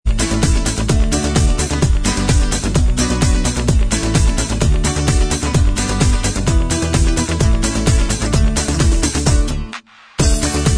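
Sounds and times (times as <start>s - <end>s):
instrumental backing track: 0.1s - 10.7s.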